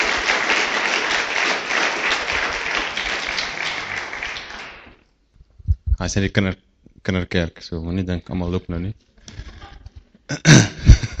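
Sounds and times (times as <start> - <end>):
church congregation clapping for people leaving: 0.0 - 5.0
speech: 6.0 - 9.5, 10.3 - 11.1.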